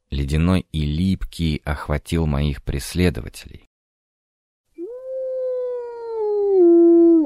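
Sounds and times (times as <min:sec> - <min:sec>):
speech: 0:00.2 - 0:03.6
dog howling: 0:04.8 - 0:07.2.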